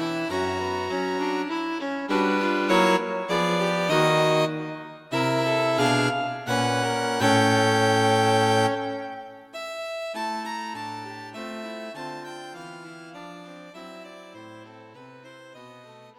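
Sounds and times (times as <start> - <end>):
string quartet concert performance: 0.0 - 9.2.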